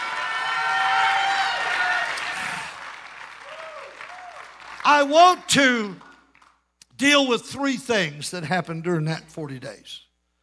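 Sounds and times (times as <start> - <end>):
audience clapping: 0.0 - 6.7
speech: 4.9 - 6.1, 7.0 - 10.1.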